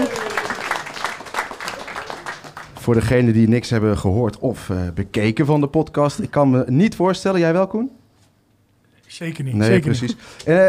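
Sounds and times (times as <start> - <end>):
audience applause: 0.0 - 2.9
speech: 2.9 - 8.0, 9.1 - 10.6.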